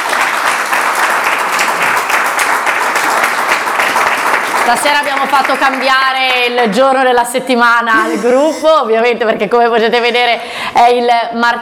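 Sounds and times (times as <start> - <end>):
audience applause: 0.0 - 6.2
speech: 4.7 - 11.6.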